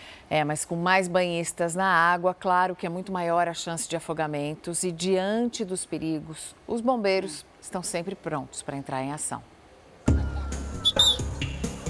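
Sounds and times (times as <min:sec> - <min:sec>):
speech: 0:00.3 - 0:09.5
lifeguard's warning whistle: 0:10.8 - 0:11.3.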